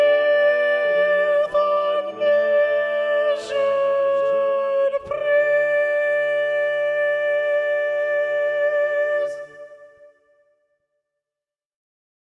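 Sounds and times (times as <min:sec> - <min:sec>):
soprano singing: 0:00.0 - 0:10.3.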